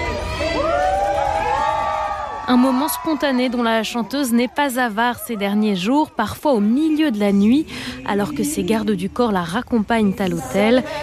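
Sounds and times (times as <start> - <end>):
crowd cheering from neighboring balconies: 0.0 - 7.0
speech: 2.5 - 11.0.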